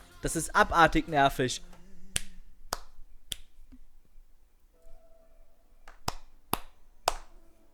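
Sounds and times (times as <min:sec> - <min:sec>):
speech: 0:00.2 - 0:01.8
video game character clapping: 0:01.7 - 0:03.5, 0:05.9 - 0:07.4.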